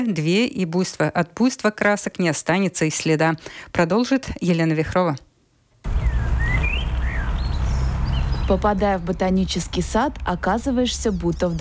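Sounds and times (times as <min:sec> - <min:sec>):
speech: 0:00.0 - 0:05.3, 0:08.5 - 0:11.5
birds singing in the Riga botanical garden: 0:05.9 - 0:08.9.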